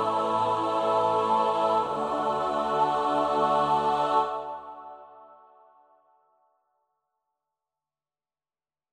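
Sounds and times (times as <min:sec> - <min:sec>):
SATB choir part practice: 0:00.0 - 0:05.7.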